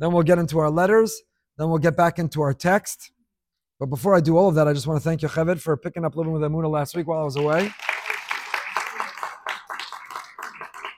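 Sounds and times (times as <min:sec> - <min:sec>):
speech: 0:00.0 - 0:03.2, 0:03.8 - 0:07.9
applause: 0:07.2 - 0:10.9.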